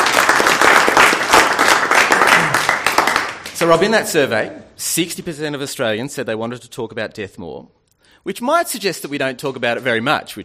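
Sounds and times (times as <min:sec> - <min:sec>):
crowd applauding: 0:00.0 - 0:03.8
speech: 0:03.6 - 0:10.4.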